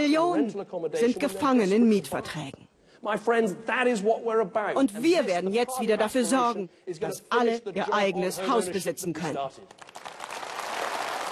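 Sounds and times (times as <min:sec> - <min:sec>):
speech: 0:00.0 - 0:10.0
audience applause: 0:09.7 - 0:11.3.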